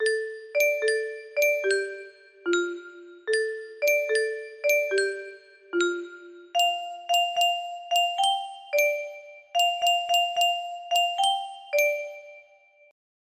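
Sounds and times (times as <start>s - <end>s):
music box melody: 0.0s - 12.9s.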